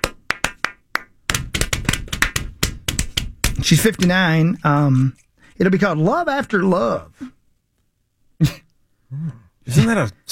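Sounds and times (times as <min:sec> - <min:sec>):
clapping: 0:00.0 - 0:03.2
speech: 0:03.6 - 0:07.3, 0:08.4 - 0:10.3.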